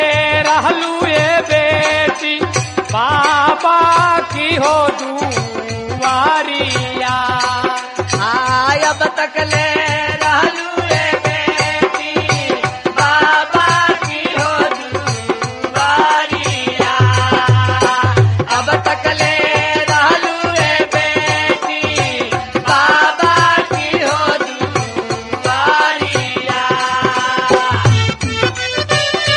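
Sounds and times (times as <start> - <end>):
Bhojpuri wedding song: 0.0 - 29.3.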